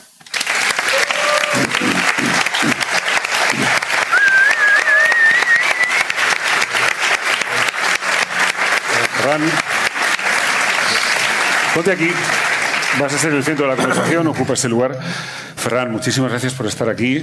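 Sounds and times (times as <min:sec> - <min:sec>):
large audience applause: 0:00.0 - 0:14.5
faint cheering voices: 0:00.8 - 0:02.2, 0:03.4 - 0:06.2
whistle: 0:04.1 - 0:06.1
speech: 0:09.4 - 0:09.6, 0:11.8 - 0:17.2.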